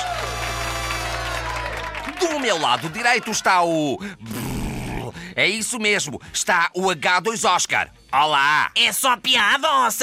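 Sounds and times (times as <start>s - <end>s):
audience applause: 0.0s - 3.6s
speech: 2.2s - 4.4s, 5.4s - 10.0s.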